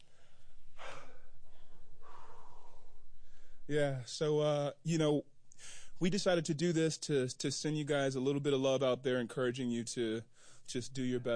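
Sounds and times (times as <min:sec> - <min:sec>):
heavy breathing, catching breath: 0:00.0 - 0:03.7, 0:05.6 - 0:06.0
speech: 0:03.7 - 0:11.3.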